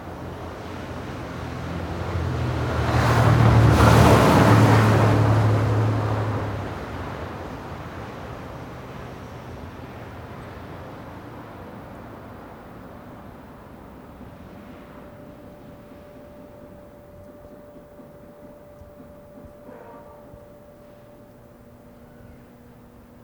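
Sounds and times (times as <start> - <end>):
car passing in NE Minneapolis: 0.0 - 23.2
low street murmur in NE Minneapolis: 0.0 - 23.2
faint steady hum: 5.3 - 23.2.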